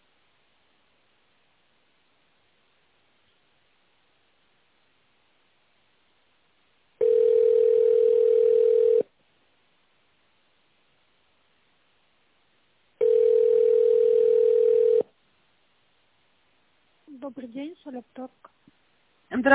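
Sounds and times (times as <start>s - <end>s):
telephone ringback tone: 7.0s - 9.1s, 13.0s - 15.1s
speech: 17.3s - 18.6s, 19.4s - 19.5s.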